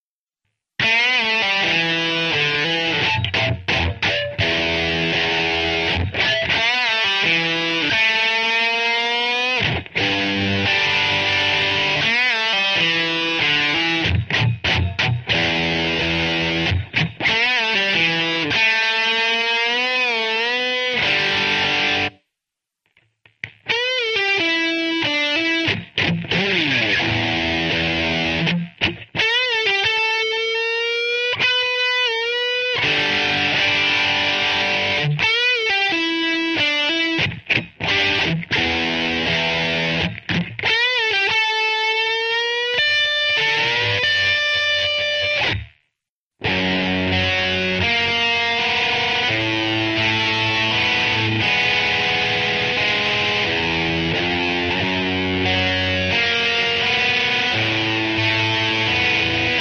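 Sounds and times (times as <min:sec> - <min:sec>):
rock guitar: 0:00.8 - 0:22.2, 0:22.9 - 0:59.5.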